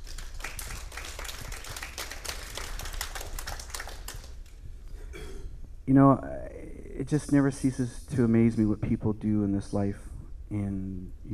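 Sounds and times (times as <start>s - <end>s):
audience clapping: 0.0s - 4.6s
speech: 5.9s - 6.4s, 7.0s - 11.3s.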